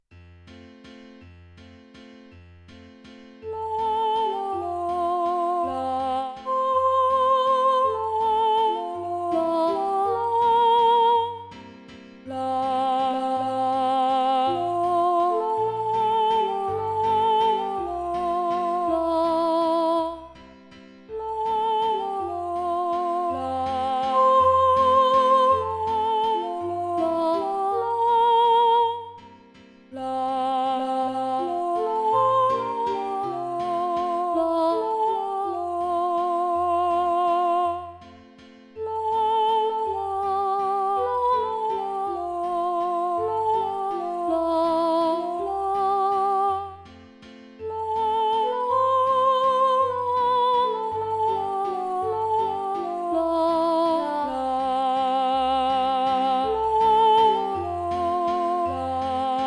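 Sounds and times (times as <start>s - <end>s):
choir singing with alto voices: 3.5s - 11.5s, 12.3s - 20.2s, 21.1s - 29.2s, 30.0s - 38.0s, 38.8s - 46.7s, 47.7s - 59.4s.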